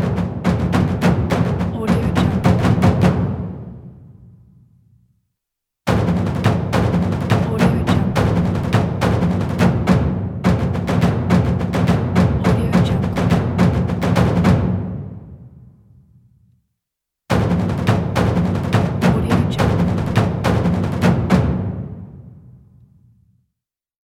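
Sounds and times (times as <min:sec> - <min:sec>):
massive taiko drum ensemble: 0:00.0 - 0:03.9, 0:05.9 - 0:15.4, 0:17.3 - 0:22.5.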